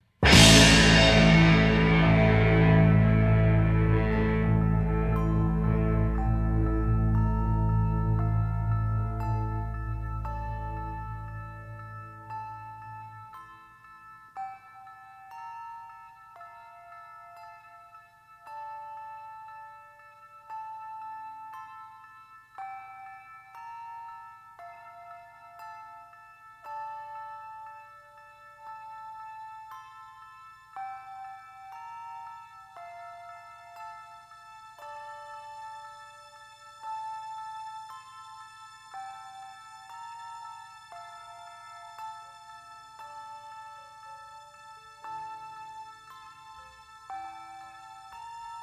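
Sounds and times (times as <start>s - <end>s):
jazz-rock orchestra playing a concerto: 0.2s - 11.2s.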